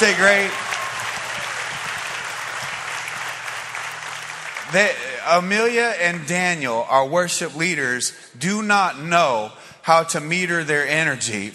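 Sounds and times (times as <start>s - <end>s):
speech: 0.0s - 0.6s, 4.7s - 11.5s
audience applauding worship team: 0.0s - 5.5s.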